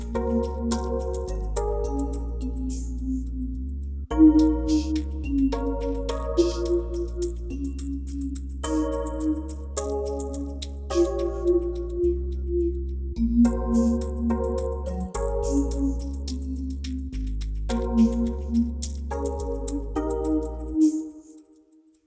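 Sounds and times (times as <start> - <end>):
music: 0.0 - 22.0.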